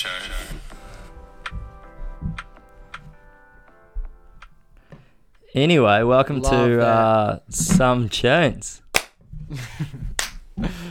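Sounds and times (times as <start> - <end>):
speech: 5.5 - 8.8, 9.5 - 10.0
several people clapping: 10.2 - 10.8.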